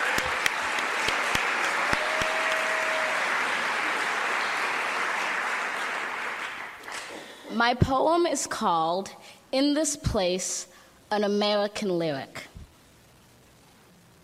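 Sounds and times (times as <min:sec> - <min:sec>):
audience applause: 0:00.0 - 0:07.4
speech: 0:07.6 - 0:12.5.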